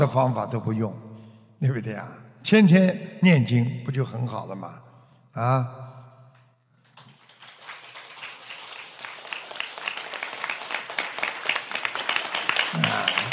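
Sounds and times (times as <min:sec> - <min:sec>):
speech: 0:00.0 - 0:05.9
audience applause at a Buddhist talk: 0:06.8 - 0:13.3.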